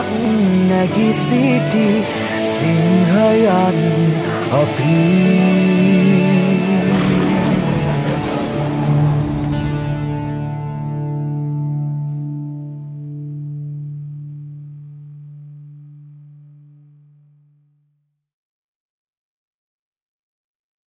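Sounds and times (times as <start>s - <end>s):
song: 0.0s - 13.2s.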